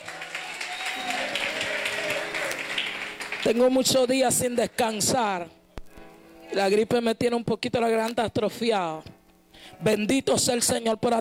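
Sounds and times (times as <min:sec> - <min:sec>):
audience applauding loudly: 0:00.0 - 0:04.2
speech: 0:03.4 - 0:05.6, 0:06.5 - 0:11.1.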